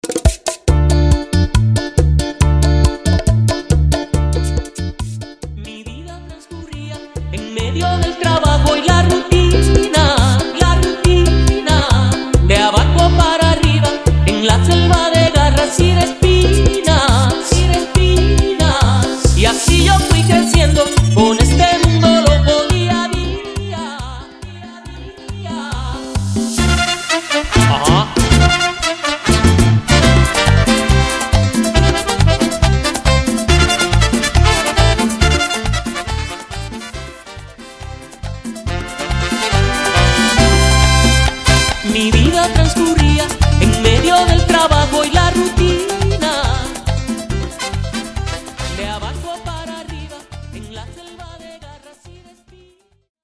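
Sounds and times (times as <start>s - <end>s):
merengue and bachata music: 0.0s - 53.1s.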